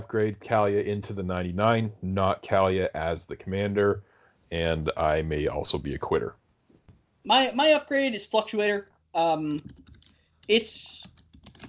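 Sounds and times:
speech: 0.0 - 6.4, 7.2 - 9.8, 10.5 - 11.2
typing on a computer keyboard while searching online for a card: 9.6 - 11.6.

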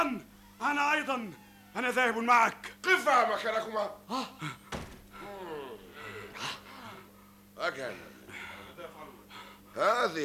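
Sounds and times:
speech: 0.0 - 4.6, 7.6 - 8.1, 9.8 - 10.2
door being opened: 4.7 - 5.2.

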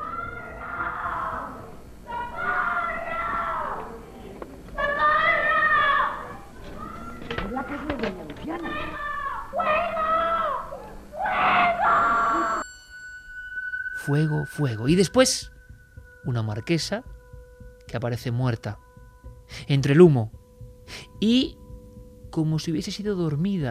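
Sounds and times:
woman screaming: 0.0 - 4.0, 4.8 - 7.3, 8.6 - 12.6
speech: 14.1 - 15.6, 16.2 - 17.2, 17.9 - 18.8, 19.5 - 21.6, 22.4 - 23.6.

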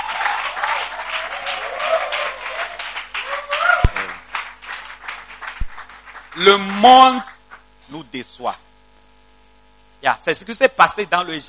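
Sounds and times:
raised voices cheering: 0.0 - 4.3
church congregation clapping for the Lord: 0.0 - 7.7
speech: 6.4 - 7.3, 7.9 - 8.6, 10.0 - 11.4.

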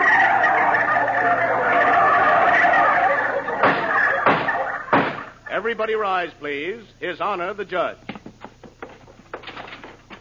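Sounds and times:
chorus of turkeys gobbling: 0.0 - 5.6
speech: 5.6 - 8.1.

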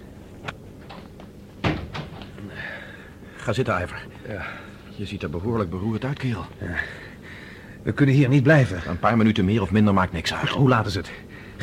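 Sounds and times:
steady hiss: 0.0 - 11.6
door shutting thump: 1.6 - 2.3
speech: 3.4 - 7.1, 7.8 - 11.6.

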